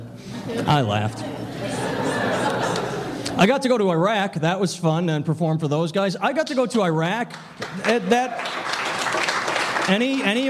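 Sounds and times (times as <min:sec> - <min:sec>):
laughter: 0:00.2 - 0:03.4
speech: 0:00.5 - 0:01.9, 0:03.4 - 0:08.7, 0:09.9 - 0:10.4
audience clapping at a stand-up comedy show: 0:07.2 - 0:10.4.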